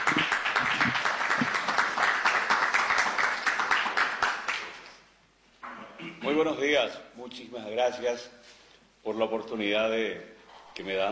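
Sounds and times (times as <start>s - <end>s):
audience applause: 0.0s - 5.0s
speech: 6.4s - 8.4s, 9.0s - 11.1s.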